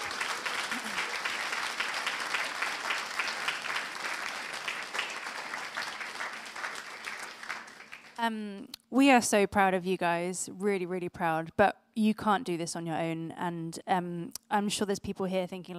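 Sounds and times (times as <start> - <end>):
audience applause: 0.0 - 8.2
speech: 8.2 - 15.7.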